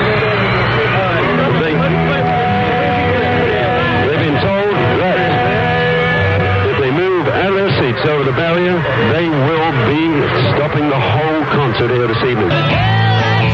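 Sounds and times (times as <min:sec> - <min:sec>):
stadium concert crowd roaring: 0:00.0 - 0:13.5
speech: 0:11.8 - 0:13.0.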